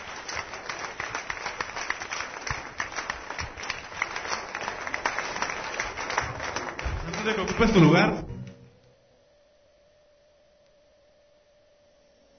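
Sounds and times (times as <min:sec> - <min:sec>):
audience applause: 0:00.0 - 0:08.6
speech: 0:07.2 - 0:08.3.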